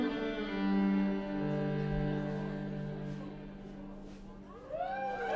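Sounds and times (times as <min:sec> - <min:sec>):
violin intro: 0:00.0 - 0:03.9.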